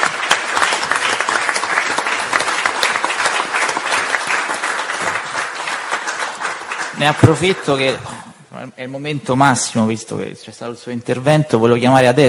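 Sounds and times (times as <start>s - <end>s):
audience applause: 0.0s - 8.2s
speech: 7.0s - 12.2s.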